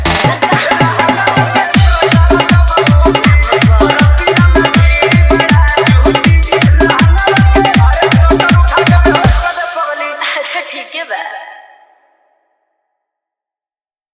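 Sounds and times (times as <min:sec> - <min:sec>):
dholak bass dance mix: 0:00.0 - 0:10.3.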